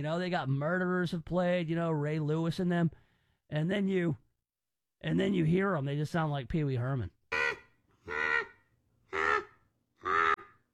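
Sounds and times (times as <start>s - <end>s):
speech: 0.0s - 4.2s, 5.0s - 7.2s
bald eagle call: 7.3s - 10.7s.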